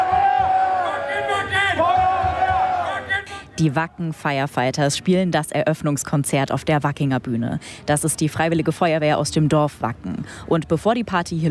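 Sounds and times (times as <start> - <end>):
rhythmic clapping: 0.0 - 3.2
large festival crowd chanting in unison: 0.0 - 3.4
speech: 3.6 - 11.4.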